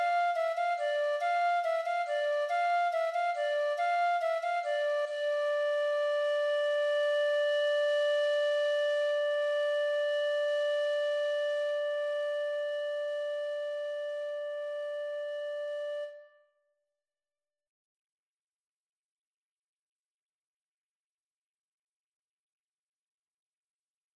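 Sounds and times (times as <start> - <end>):
flute: 0.0 - 16.6.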